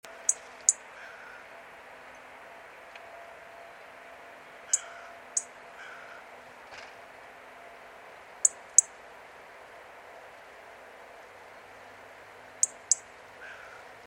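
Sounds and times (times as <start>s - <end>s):
low hum and hiss: 0.0s - 14.0s
European robin tick calls: 0.1s - 1.4s, 4.7s - 6.2s, 12.6s - 13.8s.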